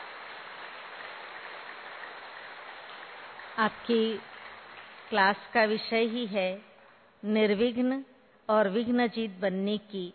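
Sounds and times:
audience applause welcoming a speaker: 0.0 - 5.2
speech: 3.6 - 4.3, 5.1 - 10.1.

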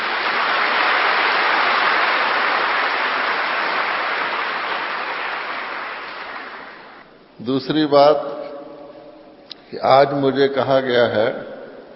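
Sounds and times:
crowd clapping loudly together: 0.0 - 7.1
speech: 7.4 - 8.4, 9.7 - 11.5.

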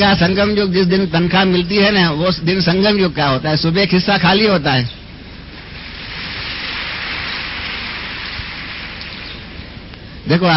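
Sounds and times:
speech: 0.0 - 5.0, 10.3 - 10.5
audience applause: 6.1 - 9.5.

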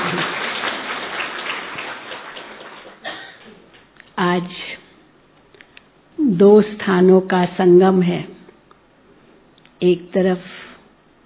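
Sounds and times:
crowd applauding: 0.0 - 3.9
speech: 4.3 - 4.6, 6.4 - 8.3, 9.8 - 10.5.

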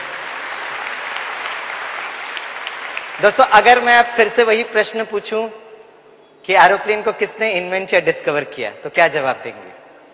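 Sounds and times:
audience applause: 0.0 - 3.5
speech: 3.2 - 5.6, 6.4 - 9.8.

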